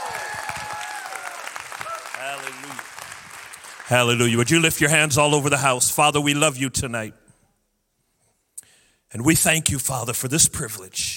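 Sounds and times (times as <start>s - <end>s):
audience hand clapping: 0.0s - 5.0s
speech: 2.2s - 3.0s, 3.9s - 7.2s, 9.1s - 11.1s.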